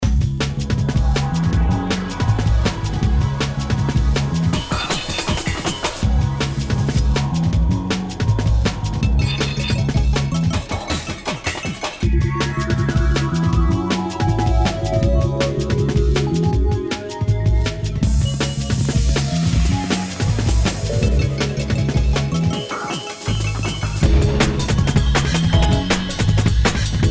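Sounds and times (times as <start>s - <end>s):
ice music: 0.0s - 27.1s.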